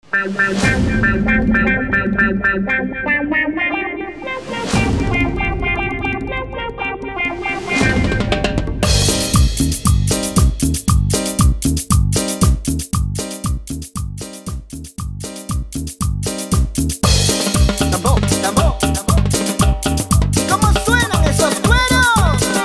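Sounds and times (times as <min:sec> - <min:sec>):
instrumental chicha music: 0:00.2 - 0:22.6.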